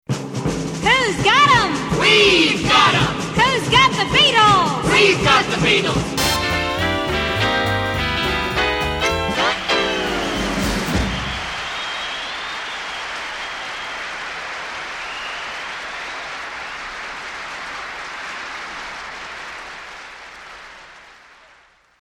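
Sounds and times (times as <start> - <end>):
music beat: 1.0 - 11.6.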